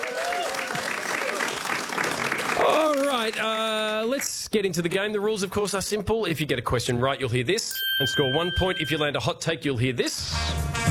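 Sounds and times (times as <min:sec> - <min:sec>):
audience applause: 0:00.0 - 0:04.1
speech: 0:02.7 - 0:10.6.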